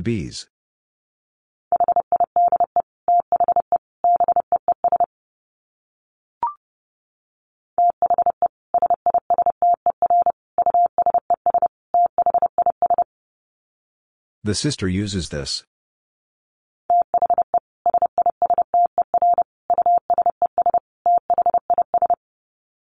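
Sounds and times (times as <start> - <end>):
speech: 0.0 - 0.5, 14.4 - 15.8
fast Morse code beeps: 1.8 - 5.1, 7.8 - 13.0, 16.9 - 22.2.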